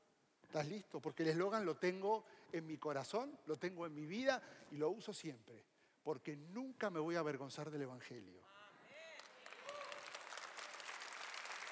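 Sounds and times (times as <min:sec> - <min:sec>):
speech: 0:00.5 - 0:08.6
audience applauding: 0:09.1 - 0:11.7.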